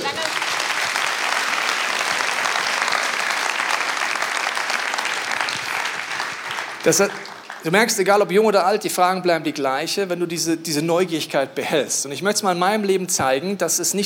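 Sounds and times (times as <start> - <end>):
large church audience applauding: 0.0 - 7.8
speech: 6.8 - 14.0.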